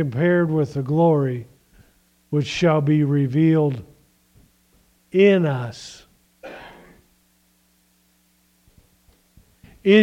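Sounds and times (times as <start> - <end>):
speech: 0.0 - 1.5, 2.3 - 3.9, 5.1 - 6.6, 9.8 - 10.0
low steady hum: 0.0 - 10.0
sneeze: 6.4 - 7.1.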